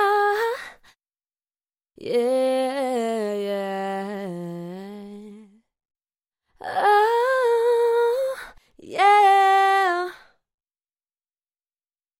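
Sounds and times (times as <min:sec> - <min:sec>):
woman singing pop a cappella: 0:00.0 - 0:01.0, 0:02.0 - 0:05.7, 0:06.6 - 0:10.4.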